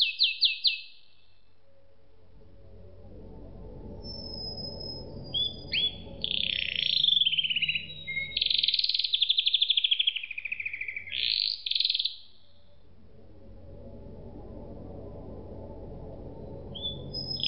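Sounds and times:
canary song with sweeping notes, buzzy rolls and rattling trills: 0.0s - 1.0s, 4.0s - 12.4s, 16.7s - 17.4s.

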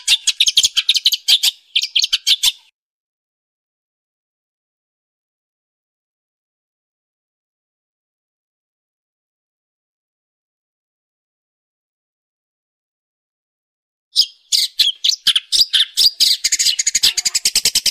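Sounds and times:
long-tailed shrike chattering song: 0.0s - 2.7s, 14.2s - 17.8s.

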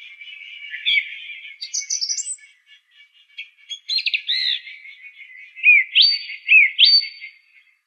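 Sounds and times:
song thrush singing whistled phrases: 0.0s - 2.4s, 3.7s - 7.5s.

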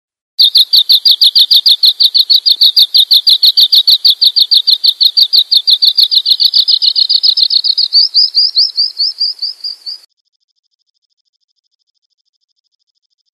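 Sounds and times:
bird chirping: 0.4s - 10.1s.

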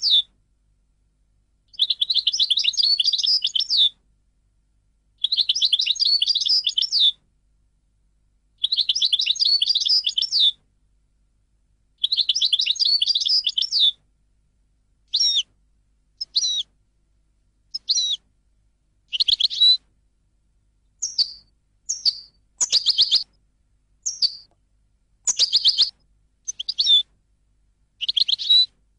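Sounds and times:
European goldfinch singing twittering phrases: 0.0s - 0.2s, 1.7s - 3.9s, 5.2s - 7.1s, 8.6s - 10.6s, 12.0s - 14.0s, 15.1s - 15.4s, 16.2s - 16.6s, 17.7s - 18.2s, 19.1s - 19.8s, 21.0s - 23.3s, 24.0s - 24.5s, 25.3s - 25.9s, 26.5s - 27.0s, 28.0s - 28.7s.

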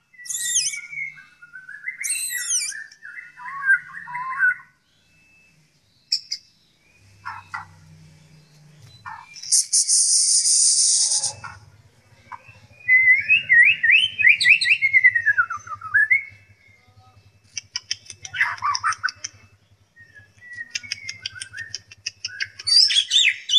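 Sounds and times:
White-rumped shama whistled song: 0.0s - 7.7s, 8.8s - 23.5s.

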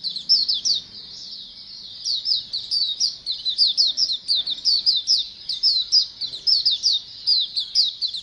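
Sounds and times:
flock of white-eyes chirping: 0.0s - 8.2s.

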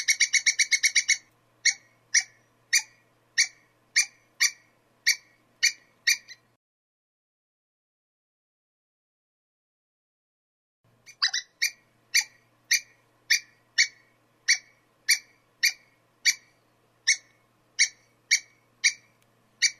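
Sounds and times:
squirrel calling with harsh sharp notes: 0.0s - 6.5s, 11.1s - 19.7s.

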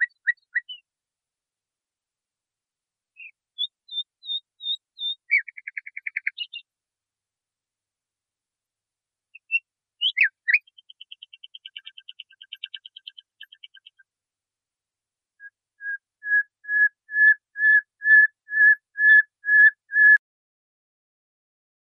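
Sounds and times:
nightingale singing: 0.0s - 0.8s, 3.2s - 6.7s, 9.3s - 14.1s, 15.4s - 20.2s.

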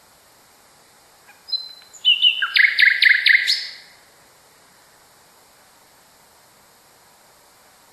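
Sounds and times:
common nightingale singing: 1.2s - 4.0s.

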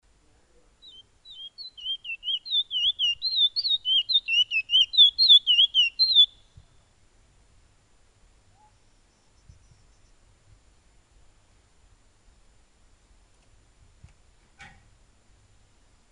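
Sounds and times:
piolet bird song: 0.7s - 6.9s, 8.5s - 10.3s.

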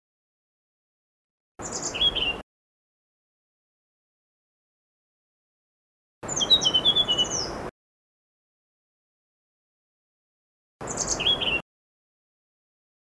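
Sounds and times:
blue-throated blue flycatcher song: 1.6s - 2.4s, 6.2s - 7.7s, 10.8s - 11.6s.

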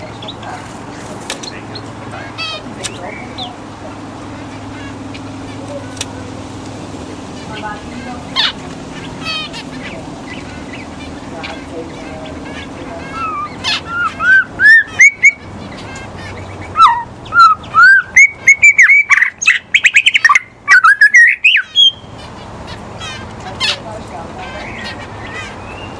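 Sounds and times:
white-rumped shama whistling song: 13.2s - 15.4s, 16.7s - 22.0s.

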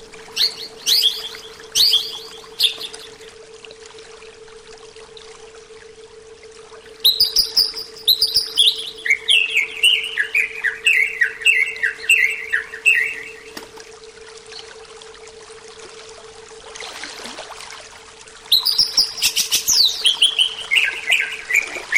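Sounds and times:
greater green leafbird song: 0.3s - 3.2s, 7.0s - 13.5s, 18.5s - 21.9s.

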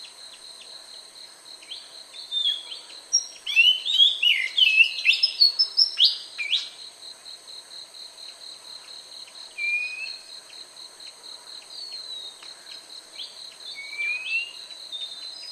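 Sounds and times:
song: 2.3s - 6.7s, 9.6s - 10.2s, 13.7s - 15.5s.

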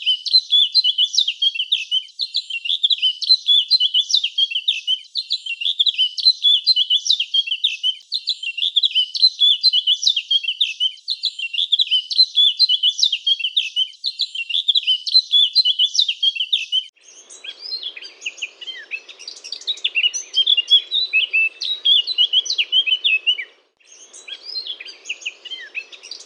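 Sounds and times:
Eurasian blackcap singing: 0.0s - 26.2s.

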